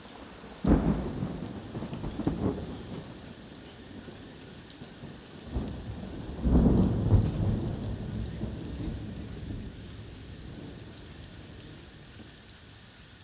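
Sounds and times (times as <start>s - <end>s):
rain: 0.0s - 13.2s
heavy thunder: 0.6s - 3.2s, 5.0s - 11.8s.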